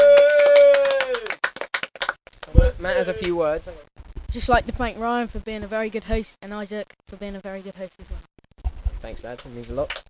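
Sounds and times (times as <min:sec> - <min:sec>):
applause: 0:00.0 - 0:03.4, 0:09.4 - 0:10.0
speech: 0:02.8 - 0:08.3, 0:09.0 - 0:10.0.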